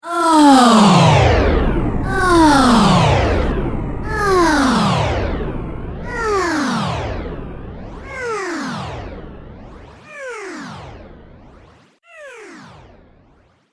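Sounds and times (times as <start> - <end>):
woman moaning in orgasm: 0.0 - 1.3, 2.1 - 3.4, 4.1 - 5.2
sci-fi music: 1.2 - 11.7.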